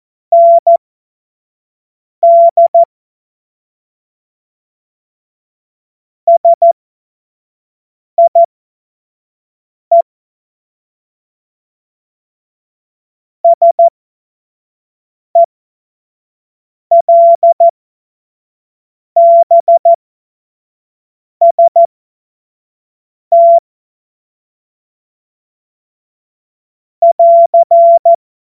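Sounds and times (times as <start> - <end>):
CW morse code beeps: 0.3 - 0.8, 2.2 - 2.9, 6.3 - 6.8, 8.2 - 8.5, 13.5 - 13.9, 16.9 - 17.7, 19.2 - 20.0, 21.4 - 21.9, 23.3 - 23.6, 27.0 - 28.2.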